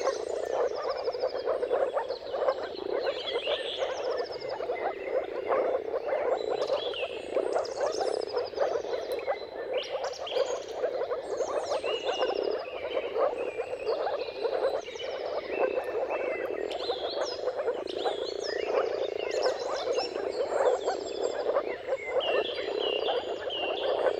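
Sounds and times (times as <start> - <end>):
birds whistling and trilling: 0.0 - 24.1
moor frogs in a mating chorus: 0.0 - 24.1.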